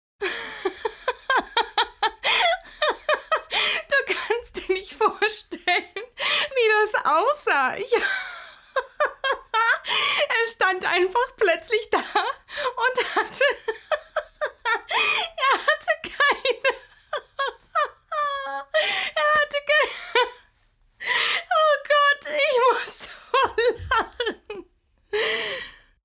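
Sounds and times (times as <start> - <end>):
person laughing: 0.2 - 4.3, 8.0 - 9.9, 12.0 - 20.4, 22.6 - 24.6
person talking: 2.3 - 8.1, 10.2 - 13.7, 15.3 - 16.8, 18.9 - 20.4, 21.5 - 24.5.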